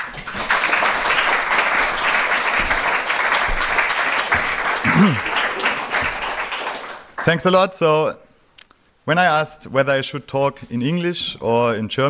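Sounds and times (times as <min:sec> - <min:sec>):
audience applause for the first speaker: 0:00.0 - 0:07.3
speech: 0:05.0 - 0:05.3, 0:07.2 - 0:08.2, 0:09.1 - 0:12.0.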